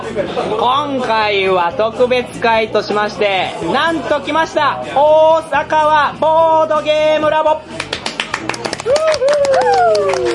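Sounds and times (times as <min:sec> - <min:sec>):
speech: 0:00.1 - 0:10.3
crowd clapping: 0:07.7 - 0:10.3
crowd cheering and whooping: 0:08.8 - 0:10.3.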